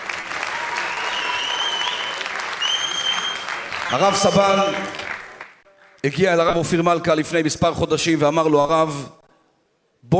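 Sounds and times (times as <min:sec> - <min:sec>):
audience applause: 0:00.0 - 0:06.0
speech: 0:03.9 - 0:05.0, 0:06.0 - 0:09.2.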